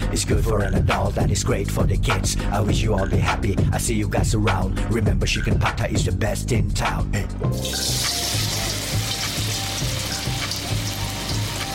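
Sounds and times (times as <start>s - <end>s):
speech: 0.1s - 8.5s
tofu frying in a pan: 7.5s - 11.7s.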